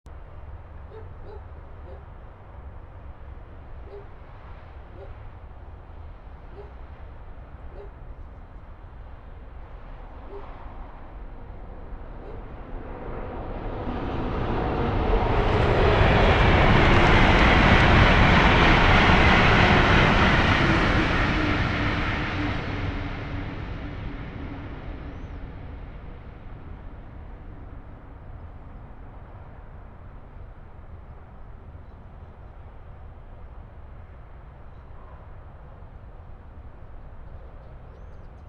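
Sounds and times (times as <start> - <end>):
train: 0.1 - 38.4.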